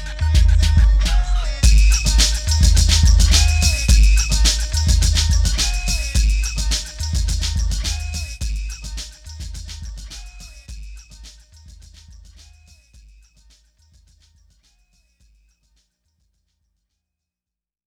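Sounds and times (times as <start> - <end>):
bonus beats: 0.4 - 14.1.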